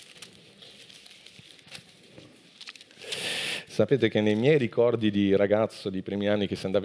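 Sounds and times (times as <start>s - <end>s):
paper Bible pages being turned: 0.0s - 3.3s
speech: 3.8s - 6.8s.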